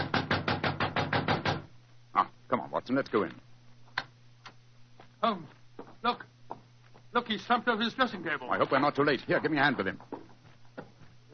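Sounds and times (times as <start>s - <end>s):
knocking on a dressing room door: 0.0s - 1.7s
speech: 2.5s - 3.5s, 5.2s - 6.2s, 7.2s - 10.1s.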